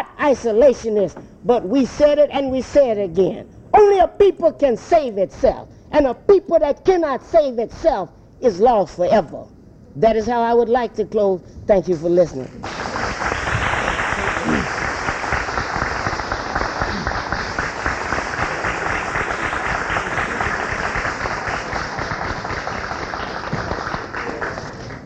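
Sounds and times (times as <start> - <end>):
speech: 0.2 - 12.8
audience applause: 12.6 - 25.0.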